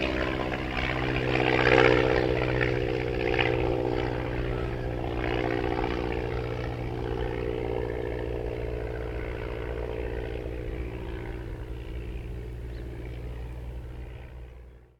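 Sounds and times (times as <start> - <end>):
1939 Ryan STM-S2 aircraft passing: 0.0 - 14.9.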